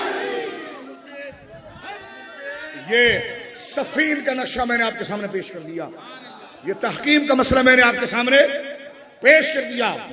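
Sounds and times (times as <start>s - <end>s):
crowd at a religious gathering chanting a slogan in unison: 0.0s - 2.1s
speech: 2.9s - 10.1s.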